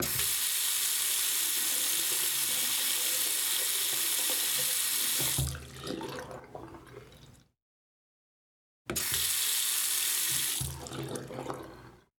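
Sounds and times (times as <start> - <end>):
water running in a sink: 0.0 - 6.1, 8.9 - 11.7.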